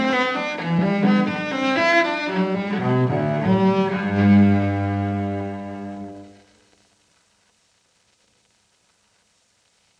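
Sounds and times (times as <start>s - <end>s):
solo cello playing a menuet live: 0.0s - 6.5s.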